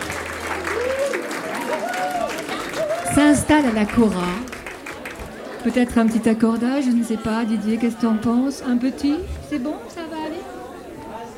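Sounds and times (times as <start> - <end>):
audience applauding a kora player: 0.0 - 7.4
speech: 3.2 - 4.5, 5.6 - 9.9.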